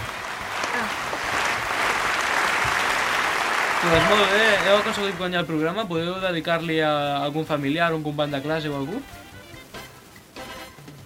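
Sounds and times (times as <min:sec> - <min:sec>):
applause: 0:00.0 - 0:05.4
speech: 0:03.8 - 0:09.2.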